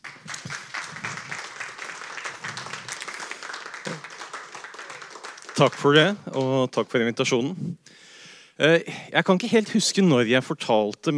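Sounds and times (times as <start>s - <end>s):
audience applause: 0.0s - 6.6s
speech: 5.6s - 8.0s, 8.6s - 11.1s.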